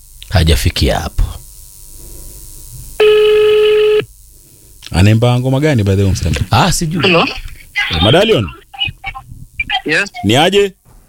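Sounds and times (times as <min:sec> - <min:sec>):
speech: 0:00.5 - 0:01.3, 0:05.0 - 0:08.6, 0:09.8 - 0:10.8
telephone ringing during a call: 0:03.0 - 0:04.1.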